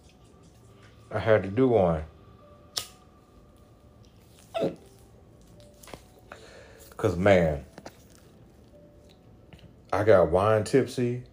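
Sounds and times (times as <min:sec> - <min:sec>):
speech: 0:01.1 - 0:02.1, 0:07.0 - 0:07.7, 0:09.9 - 0:11.3
hiccups: 0:04.4 - 0:04.9.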